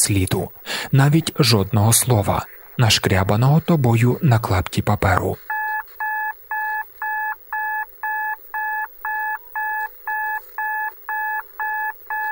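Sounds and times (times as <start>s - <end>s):
speech: 0.0s - 5.5s
telescreen clock time signal electronic beeps: 5.5s - 12.3s.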